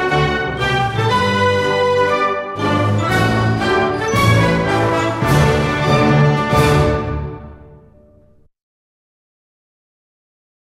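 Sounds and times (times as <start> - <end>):
national anthem: 0.0 - 7.7.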